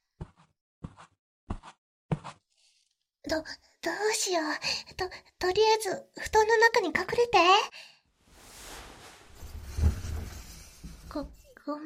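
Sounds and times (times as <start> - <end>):
speech: 3.3 - 8.0, 11.1 - 11.8
footsteps: 8.2 - 11.3.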